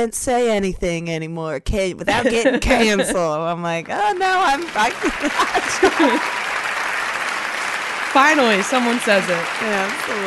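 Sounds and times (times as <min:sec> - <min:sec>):
speech: 0:00.0 - 0:06.4, 0:08.2 - 0:10.2
laughter: 0:02.1 - 0:03.2, 0:04.5 - 0:07.5
applause sound effect: 0:04.0 - 0:10.2.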